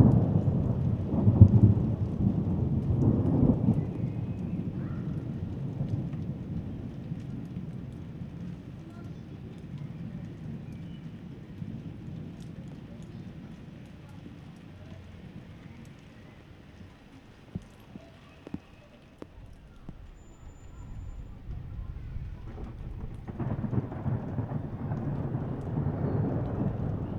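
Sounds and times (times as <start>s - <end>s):
thunder: 0.0s - 13.8s, 19.3s - 27.1s.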